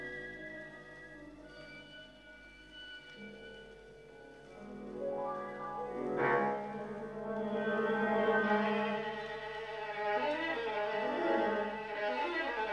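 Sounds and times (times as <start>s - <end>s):
violin and piano piece: 5.8s - 12.7s.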